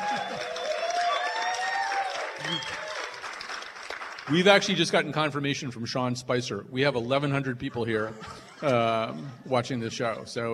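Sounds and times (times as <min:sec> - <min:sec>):
audience applause at Trinity Cinestudio: 0:00.0 - 0:04.7
speech: 0:04.3 - 0:10.5
laughter: 0:08.0 - 0:09.4.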